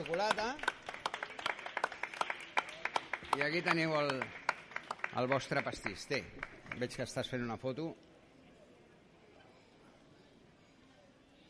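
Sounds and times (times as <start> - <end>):
speech: 0.0 - 0.6, 3.4 - 4.4, 5.2 - 8.1
audience applauding: 0.0 - 7.2.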